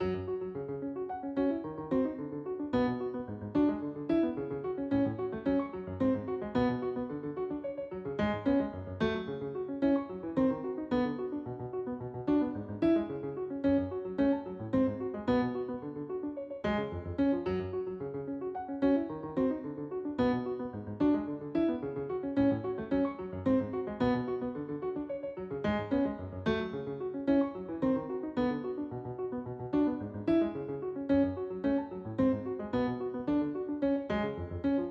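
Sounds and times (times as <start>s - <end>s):
piano loop: 0.0s - 34.8s.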